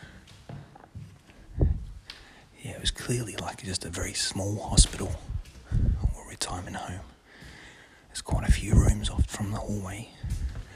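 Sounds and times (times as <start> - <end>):
footsteps on a lino floor in a disused small hospital or retirement home hallway: 0.0 - 2.4, 4.7 - 6.2, 6.8 - 7.7, 8.4 - 10.7
speech: 2.8 - 5.3, 6.5 - 7.1, 8.2 - 10.4.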